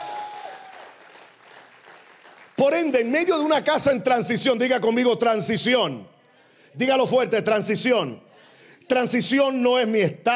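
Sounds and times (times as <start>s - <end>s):
audience applause: 0.0s - 2.6s
speech: 2.6s - 6.2s, 6.8s - 8.3s, 8.9s - 10.3s.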